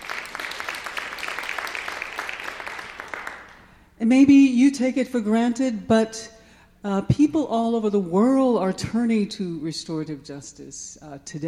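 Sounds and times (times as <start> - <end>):
audience applause: 0.0 - 3.6
speech: 4.0 - 11.4.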